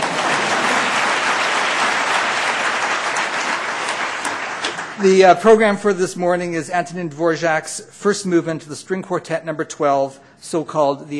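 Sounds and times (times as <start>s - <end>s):
audience clapping: 0.0s - 5.8s
speech: 5.0s - 11.1s.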